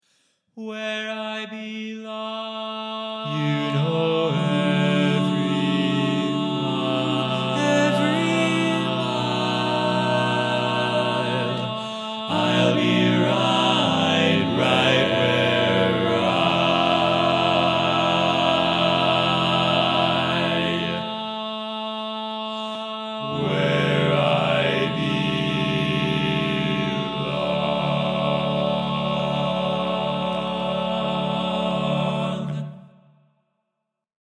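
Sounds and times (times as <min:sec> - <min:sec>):
barbershop quartet singing tags, all parts: 0:02.1 - 0:32.8.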